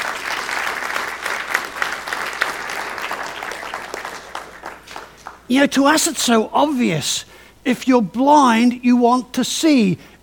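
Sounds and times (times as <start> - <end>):
audience clapping: 0.0 - 5.5
speech: 5.5 - 10.2.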